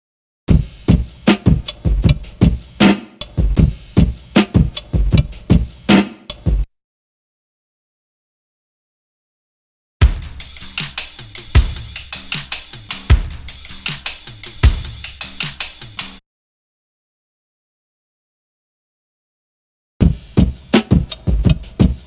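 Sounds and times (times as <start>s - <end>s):
drum loop: 0.5s - 6.7s, 10.0s - 16.2s, 20.0s - 22.0s.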